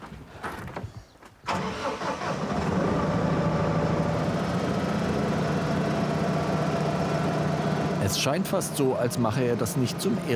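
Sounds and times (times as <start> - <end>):
tractor engine starting and running: 1.4 - 10.3
speech: 8.1 - 10.3.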